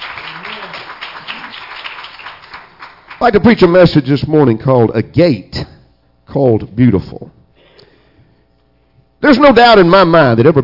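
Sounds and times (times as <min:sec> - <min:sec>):
church congregation clapping hands for Jesus: 0:00.0 - 0:03.9
speech: 0:03.2 - 0:05.7, 0:06.3 - 0:07.4, 0:09.2 - 0:10.6.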